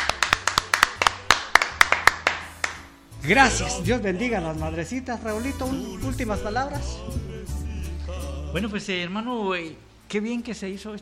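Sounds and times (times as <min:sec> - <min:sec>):
sparse applause from a small group: 0:00.0 - 0:02.9
speech: 0:03.2 - 0:07.6, 0:08.5 - 0:11.0.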